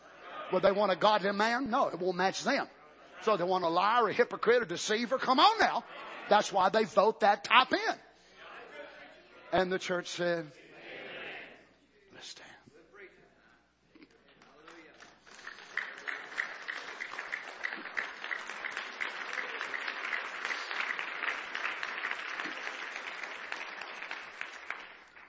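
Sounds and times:
speech: 0:00.5 - 0:08.1, 0:09.5 - 0:10.6, 0:12.2 - 0:12.4
audience hand clapping: 0:14.4 - 0:25.2.

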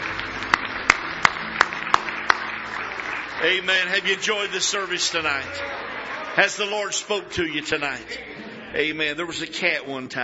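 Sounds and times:
congregation hand claps of praise at a church service: 0:00.0 - 0:05.1
speech: 0:03.4 - 0:10.2.

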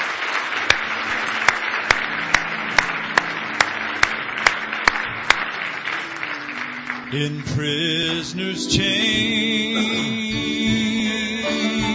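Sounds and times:
crowd clapping hands in praise: 0:00.0 - 0:08.4
sharper louder rhythmic claps: 0:00.0 - 0:11.9
speech: 0:07.1 - 0:11.9.

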